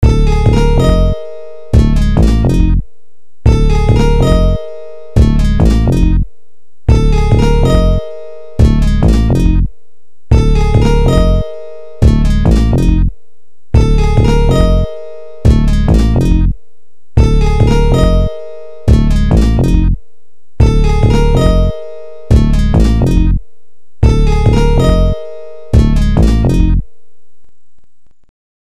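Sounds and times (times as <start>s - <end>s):
instrumental music: 0.0s - 2.8s, 3.5s - 6.3s, 6.9s - 9.7s, 10.3s - 13.2s, 13.8s - 16.6s, 17.2s - 20.0s, 20.6s - 23.4s, 24.0s - 27.0s.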